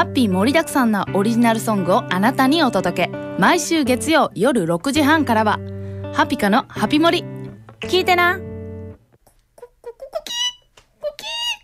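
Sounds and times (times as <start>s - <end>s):
speech: 0.0s - 8.5s
rooster chirping and clucking: 9.6s - 11.6s.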